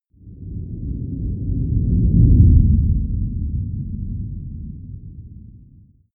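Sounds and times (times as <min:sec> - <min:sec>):
low slow whoosh: 0:00.2 - 0:06.0.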